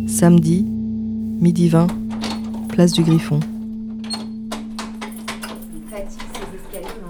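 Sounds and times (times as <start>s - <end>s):
speech: 0.2s - 0.7s, 1.4s - 2.0s, 2.8s - 3.5s
key working a stiff door lock: 1.7s - 7.0s.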